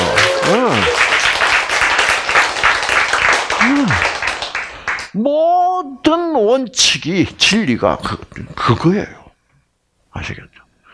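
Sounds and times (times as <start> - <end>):
audience applause: 0.0 - 5.1
speech: 5.9 - 9.2, 10.2 - 10.5.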